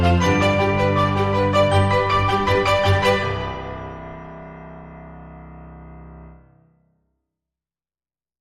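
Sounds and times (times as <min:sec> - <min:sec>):
uplifting piano music: 0:00.0 - 0:06.6.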